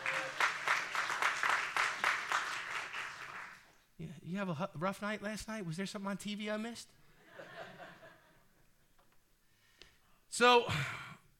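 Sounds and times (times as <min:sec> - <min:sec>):
audience clapping hands: 0:00.0 - 0:03.8
speech: 0:04.3 - 0:07.0, 0:10.4 - 0:11.0.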